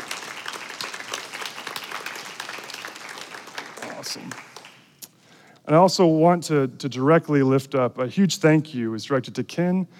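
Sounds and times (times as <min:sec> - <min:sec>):
crowd applause: 0:00.0 - 0:04.9
speech: 0:04.0 - 0:04.5, 0:05.6 - 0:09.9.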